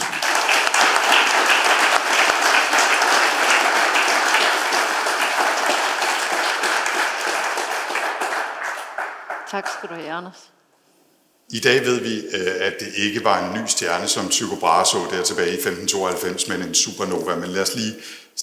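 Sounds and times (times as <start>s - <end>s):
audience applause welcoming a guest professor onstage: 0.0s - 10.1s
speech: 9.5s - 10.6s, 11.5s - 18.4s.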